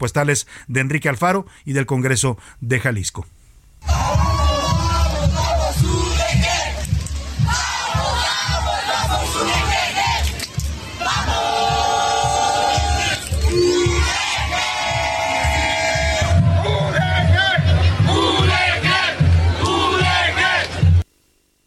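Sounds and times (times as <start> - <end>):
speech: 0.0 - 3.4
massive protest march crowd chanting: 3.8 - 21.0.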